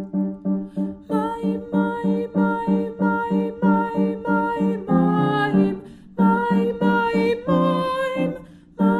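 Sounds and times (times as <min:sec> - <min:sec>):
tenor singing: 0:00.2 - 0:08.9.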